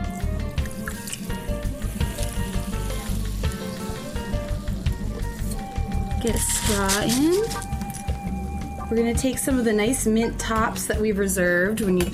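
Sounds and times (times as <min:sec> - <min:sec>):
soda splashing over ice in a glass: 0:00.2 - 0:08.0
speech: 0:06.2 - 0:07.7, 0:08.9 - 0:12.1
ice clinking: 0:06.2 - 0:08.1.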